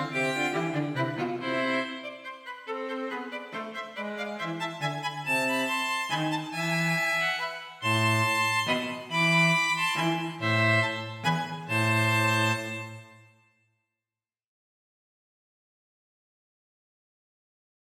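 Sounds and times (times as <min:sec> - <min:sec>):
minuet for two violins and cello: 0:00.0 - 0:13.4.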